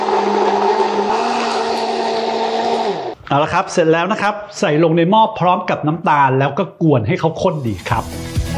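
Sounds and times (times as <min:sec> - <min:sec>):
blender blending bell peppers: 0:00.0 - 0:03.2
speech: 0:03.3 - 0:08.4.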